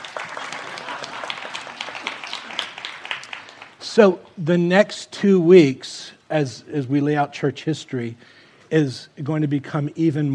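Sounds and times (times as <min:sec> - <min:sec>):
audience applause: 0:00.0 - 0:03.8
speech: 0:04.0 - 0:10.3.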